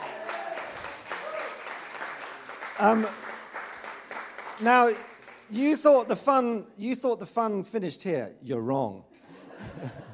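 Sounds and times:
round of applause: 0.0 - 5.8
speech: 2.8 - 3.2, 4.6 - 9.1, 9.8 - 10.0
laughter: 9.1 - 10.1.

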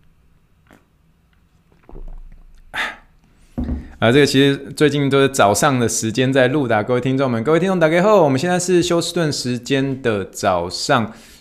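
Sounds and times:
person drinking plain water with gulping swallows: 1.6 - 4.0
speech: 4.0 - 11.3.

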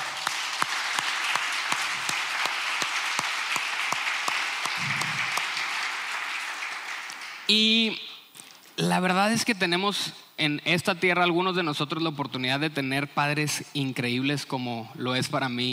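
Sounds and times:
audience applause: 0.0 - 7.5
speech: 7.5 - 8.0, 8.8 - 15.7.

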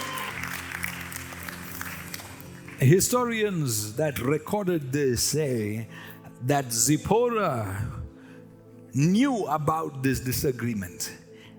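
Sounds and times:
people clapping hands: 0.0 - 3.6
speech: 2.8 - 8.0, 9.0 - 11.2.

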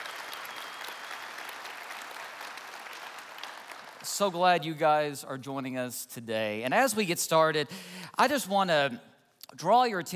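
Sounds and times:
church congregation clapping: 0.0 - 4.6
speech: 4.0 - 10.1.

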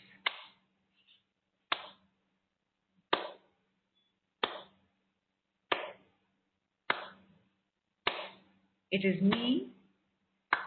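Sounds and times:
slow hand clapping: 0.1 - 0.6, 1.7 - 2.1, 3.1 - 3.5, 4.4 - 4.8, 5.7 - 6.1, 6.8 - 7.3, 8.0 - 8.5, 10.5 - 10.6
speech: 8.9 - 9.8.

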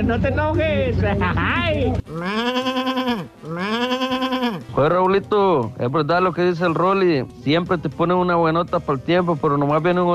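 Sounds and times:
speech: 0.0 - 4.0, 4.8 - 10.1
sheep bleating: 2.1 - 4.7.

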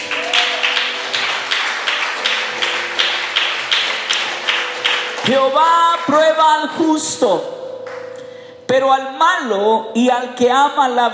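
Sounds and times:
crowd audience applauding: 0.0 - 6.8
speech: 5.3 - 7.6, 8.7 - 11.1.

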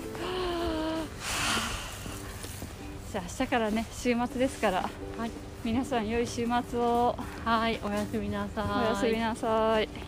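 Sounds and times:
deep breath: 0.2 - 2.4
speech: 3.1 - 10.0.

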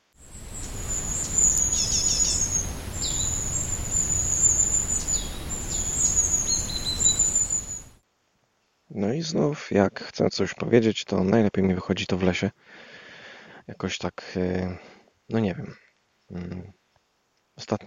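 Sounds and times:
rain falling: 0.1 - 8.0
speech: 9.0 - 12.9, 13.7 - 16.8, 17.6 - 17.8.

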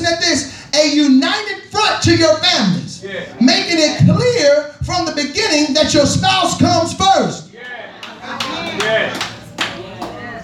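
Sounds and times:
speech: 0.8 - 9.3
audience hand claps: 8.0 - 10.2.

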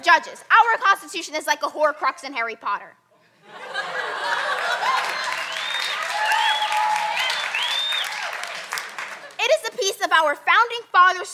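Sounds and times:
speech: 0.0 - 3.6, 10.0 - 11.3
laughter: 3.4 - 5.6
theatre audience applauding: 4.2 - 9.4.

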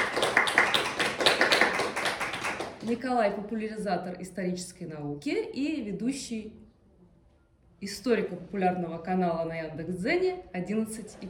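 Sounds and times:
audience applause welcoming an author onstage: 0.0 - 2.8
speech: 2.9 - 6.6, 7.8 - 11.2.

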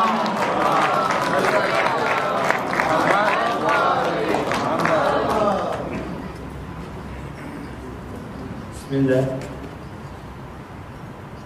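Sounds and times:
crowd loudly reciting salawat in welcome at an interfaith conference: 0.0 - 6.4
speech: 8.9 - 9.5.

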